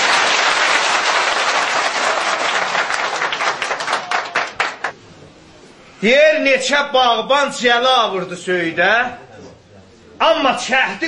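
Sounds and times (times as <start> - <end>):
audience applause: 0.0 - 4.9
speech: 6.0 - 9.2, 10.2 - 11.0.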